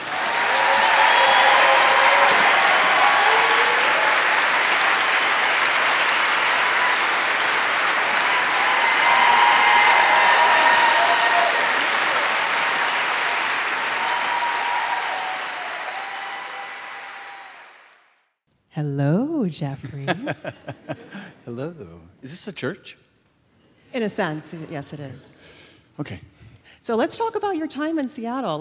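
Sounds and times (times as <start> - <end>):
Seattle audience applauding to welcome a guest on stage: 0.0 - 18.3
speech: 19.5 - 23.1, 23.9 - 28.5
laughter: 19.9 - 21.3.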